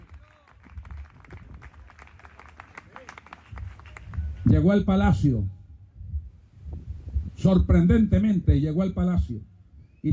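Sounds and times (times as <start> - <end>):
audience applause: 0.0 - 4.4
speech: 4.4 - 5.6, 7.4 - 10.1.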